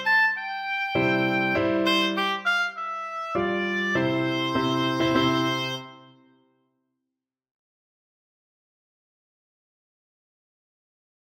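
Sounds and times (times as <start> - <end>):
oboe: 0.0 - 6.3.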